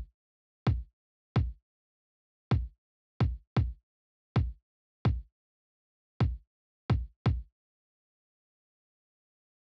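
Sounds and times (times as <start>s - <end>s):
kick drum: 0.7s - 1.6s, 2.5s - 3.8s, 4.4s - 5.3s, 6.2s - 7.5s.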